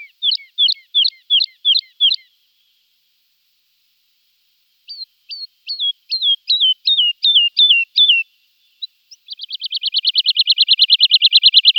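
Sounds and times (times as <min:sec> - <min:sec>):
woodlark song: 0:00.0 - 0:02.9, 0:04.8 - 0:11.7.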